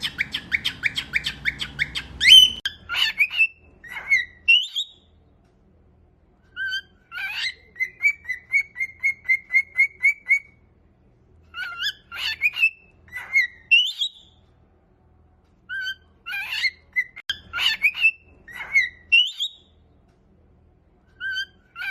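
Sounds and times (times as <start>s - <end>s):
cockatiel whistles and chatter: 0.0s - 5.1s, 6.5s - 10.6s, 11.5s - 14.4s, 15.6s - 19.8s, 21.1s - 21.8s.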